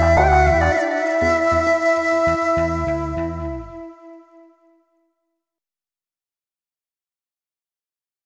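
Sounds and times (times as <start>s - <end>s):
instrumental music: 0.0s - 4.7s.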